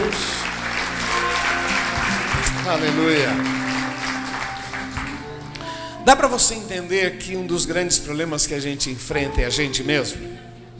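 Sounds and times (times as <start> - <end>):
audience applause: 0.0 - 5.7
speech: 2.7 - 3.6, 6.1 - 10.5.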